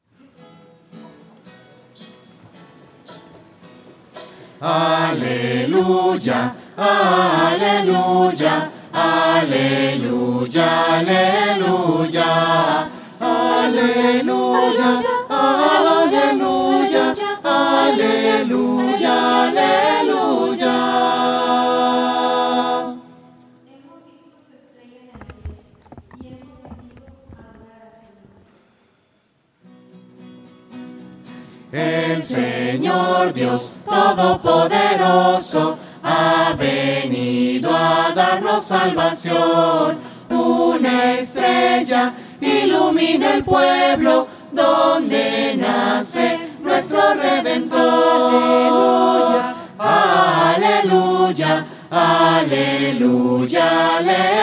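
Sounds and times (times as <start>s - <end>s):
voices singing alleluia: 4.6s - 23.4s, 31.7s - 54.4s.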